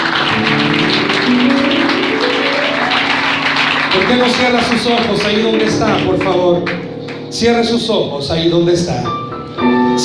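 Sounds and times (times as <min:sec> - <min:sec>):
audience applauding: 0:00.0 - 0:07.2
speech: 0:04.0 - 0:09.2.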